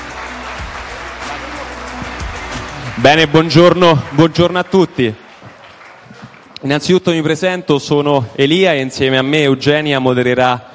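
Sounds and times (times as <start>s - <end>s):
applause for a panel speaker: 0.0s - 7.2s
speech: 3.0s - 5.2s, 6.6s - 10.7s.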